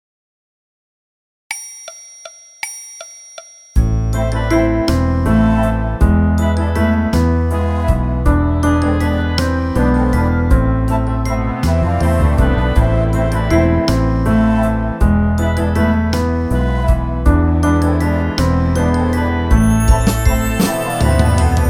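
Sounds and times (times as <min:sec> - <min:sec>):
piano: 0:03.8 - 0:21.6
orchestra playing: 0:04.1 - 0:21.6.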